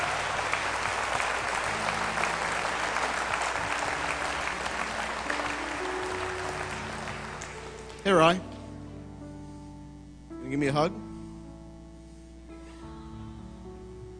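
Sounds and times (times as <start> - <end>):
audience applause: 0.0 - 8.4
speech: 8.1 - 8.5, 10.5 - 11.0.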